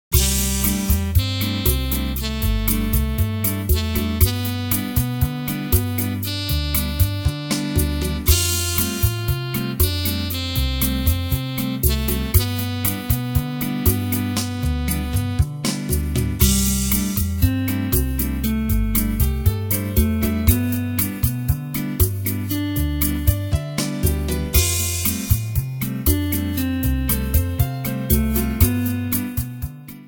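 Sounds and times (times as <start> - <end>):
salsa music: 0.0 - 30.0
saxophone: 0.1 - 15.8, 16.4 - 21.3.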